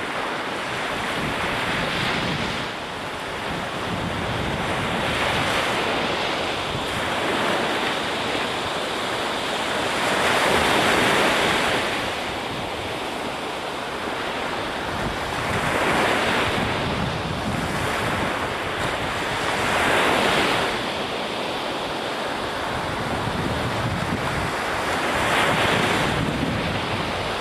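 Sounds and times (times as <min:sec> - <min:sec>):
sea waves: 0:00.0 - 0:27.3.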